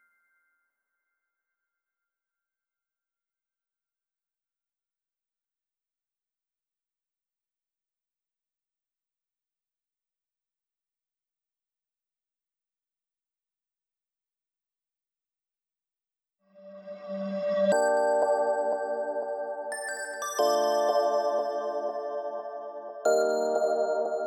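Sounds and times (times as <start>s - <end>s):
synths: 16.6s - 24.2s.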